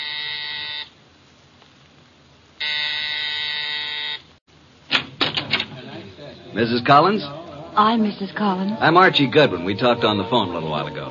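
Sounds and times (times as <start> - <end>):
doorbell buzzer ringing: 0.0 - 0.9, 2.6 - 4.2
speech: 6.6 - 11.0.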